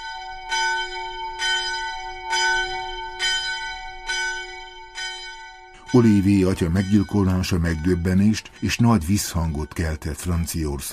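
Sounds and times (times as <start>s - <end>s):
church bell tolling a death knell: 0.0s - 10.9s
speech: 5.9s - 10.9s.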